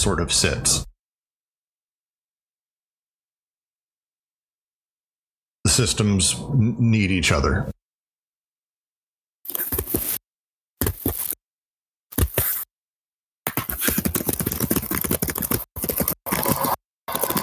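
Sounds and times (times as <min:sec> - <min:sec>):
speech: 0:00.0 - 0:00.9, 0:05.8 - 0:07.7
keyboard typing: 0:12.1 - 0:12.6, 0:13.5 - 0:17.4.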